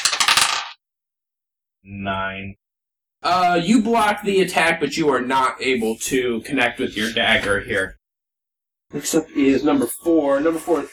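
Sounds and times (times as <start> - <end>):
dice rolling: 0.0 - 0.8
speech: 1.8 - 2.6, 3.2 - 8.0, 8.9 - 10.9.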